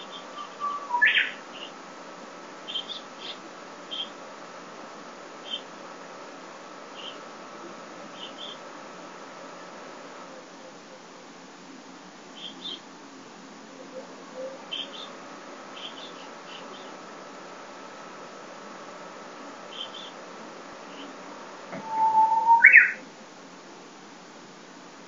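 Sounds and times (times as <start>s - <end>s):
uguisu: 0.0s - 1.9s, 2.6s - 4.2s, 5.4s - 5.8s, 6.9s - 7.4s, 8.1s - 8.7s, 12.3s - 13.0s, 13.7s - 17.1s, 19.5s - 20.2s, 20.8s - 21.2s, 21.8s - 23.0s.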